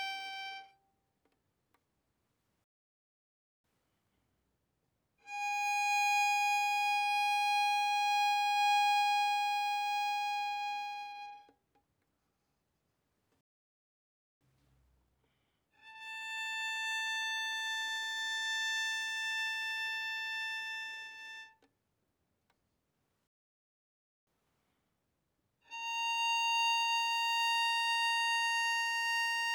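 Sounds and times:
bowed violin on the E string: 0.0s - 0.8s, 5.2s - 11.5s, 15.8s - 21.6s, 25.7s - 29.5s.

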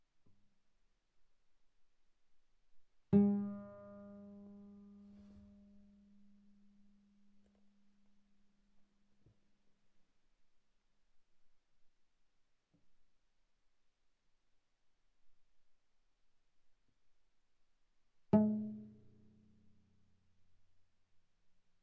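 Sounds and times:
viola pizzicato on the A string: 3.2s - 5.7s.

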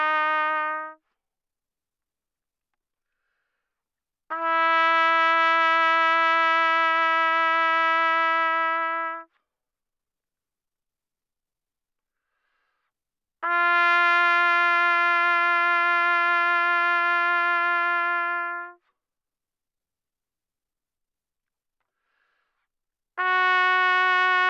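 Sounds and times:
trumpet vibrato at mezzo-forte from C4 to B4: 0.0s - 1.0s, 4.3s - 9.3s, 13.4s - 18.8s, 23.2s - 24.4s.

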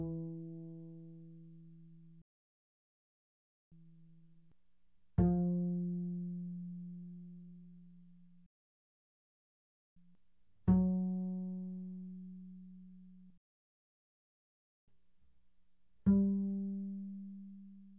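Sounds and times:
double bass pizzicato fortissimo on the G string: 0.0s - 1.8s, 5.2s - 7.6s, 10.7s - 13.2s, 16.1s - 17.9s.

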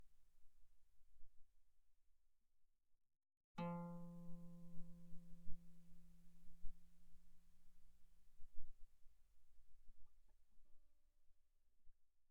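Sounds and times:
pianissimo guitar notes on the A string: 3.6s - 6.7s.

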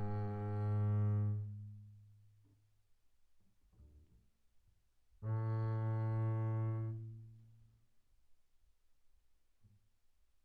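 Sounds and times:
double bass bowed on the A string mezzo forte: 0.0s - 1.8s, 5.2s - 7.4s.

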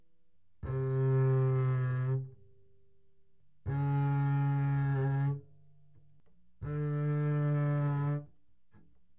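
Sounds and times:
double bass bowed fortissimo on the E string: 0.6s - 2.5s, 3.7s - 5.5s, 6.6s - 8.3s.

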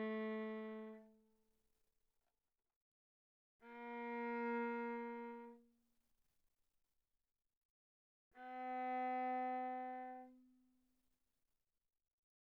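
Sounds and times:
viola bowed arco sul C pianissimo: 0.0s - 1.2s, 3.6s - 5.7s, 8.4s - 10.6s.

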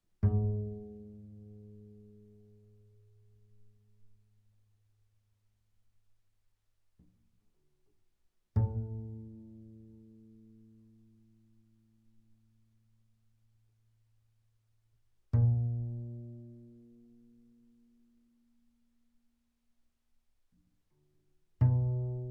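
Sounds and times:
double bass pizzicato on the G string fortissimo: 0.2s - 2.7s, 8.6s - 11.4s, 15.3s - 17.9s, 21.6s - 22.3s.

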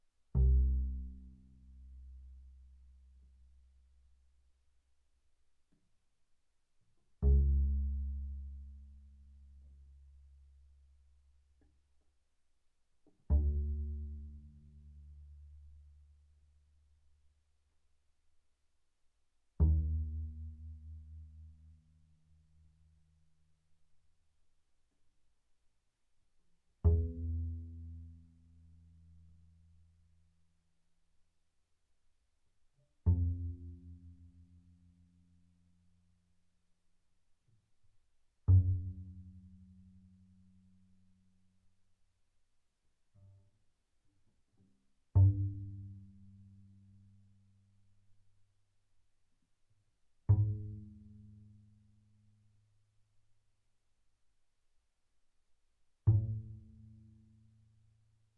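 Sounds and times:
double bass pizzicato on the A string: 0.3s - 3.7s, 7.2s - 11.8s, 13.0s - 16.2s, 19.6s - 22.4s, 26.8s - 29.9s, 32.9s - 35.4s, 38.4s - 41.1s, 45.0s - 47.8s, 50.2s - 52.0s, 56.0s - 57.6s.

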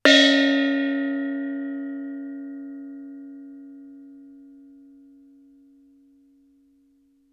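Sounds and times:
Thai gong struck fortissimo on Db4: 0.1s - 4.5s.

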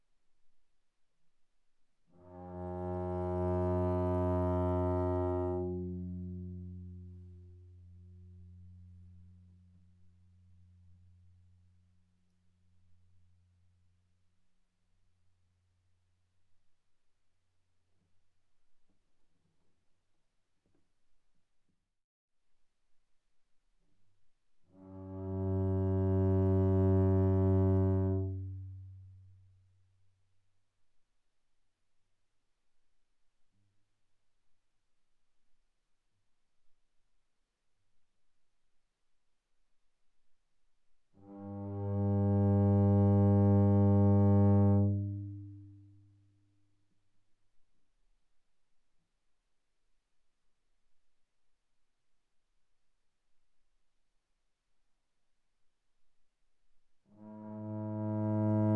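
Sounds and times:
viola played arco sul G, mezzo-forte, G3 to B3: 2.2s - 9.6s, 24.9s - 29.1s, 41.2s - 45.8s, 57.2s - 58.7s.

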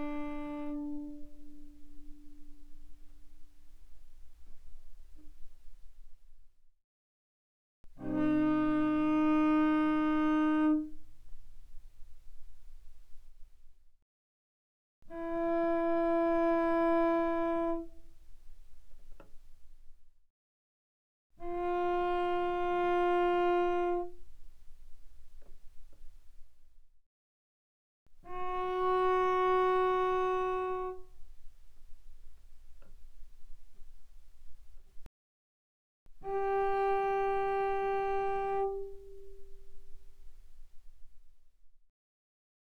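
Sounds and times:
cello bowed mezzo forte on the G string, G3 and G4: 0.0s - 6.1s, 7.9s - 13.6s, 15.1s - 19.8s, 21.4s - 26.6s, 28.2s - 35.0s, 36.2s - 41.3s.

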